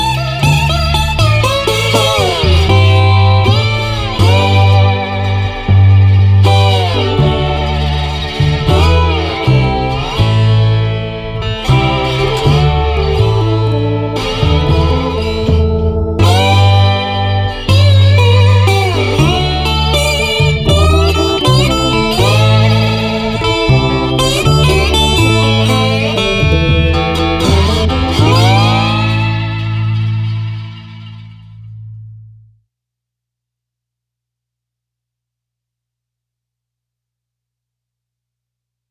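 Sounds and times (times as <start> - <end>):
music without drums at 120 tempo: 0.0 - 32.6.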